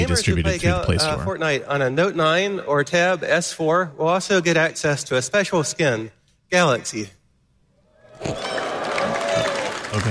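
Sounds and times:
speech: 0.0s - 7.2s, 8.2s - 8.6s, 10.0s - 10.1s
scattered audience applause at a Samsung Galaxy Note 9 launch event: 8.2s - 10.1s.

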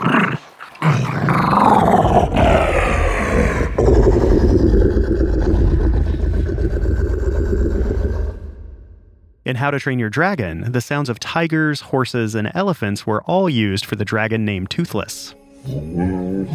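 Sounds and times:
pitched-down wiener dog growling as Rancor monster growl: 0.0s - 8.6s
speech: 9.5s - 16.5s.

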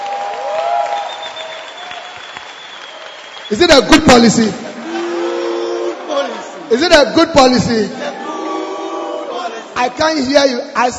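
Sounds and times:
audience applause: 0.0s - 7.0s
speech: 3.5s - 4.6s, 6.7s - 8.0s, 9.8s - 10.9s.

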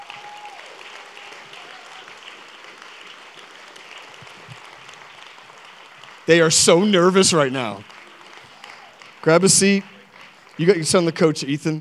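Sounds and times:
audience applause: 0.0s - 11.5s
speech: 6.3s - 8.0s, 9.2s - 9.9s, 10.6s - 11.7s.

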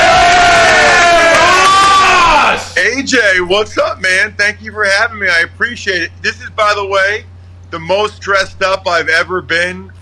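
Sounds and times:
studio crowd cheering to welcome a guest onto a show: 0.0s - 2.8s
speech: 3.0s - 9.9s.

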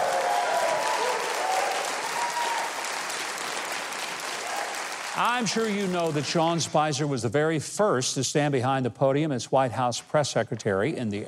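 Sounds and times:
audience applause for the band: 0.0s - 6.8s
speech: 5.2s - 11.2s.

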